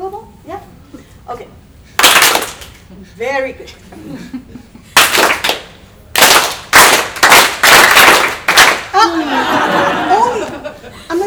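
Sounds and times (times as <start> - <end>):
speech: 1.3 - 1.6, 2.9 - 4.6
audience clapping in ragged bursts: 2.0 - 2.8, 5.0 - 10.9
laughter: 3.8 - 5.0, 8.9 - 11.2.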